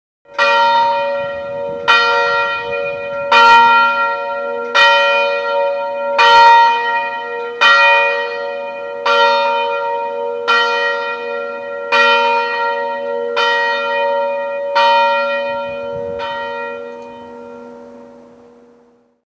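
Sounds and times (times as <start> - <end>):
bell: 0.3 - 19.2.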